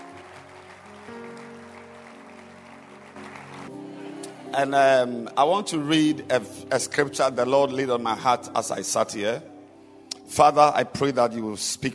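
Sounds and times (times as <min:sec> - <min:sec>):
audience clapping: 0:00.0 - 0:04.4
speech: 0:04.5 - 0:09.5, 0:10.3 - 0:11.9.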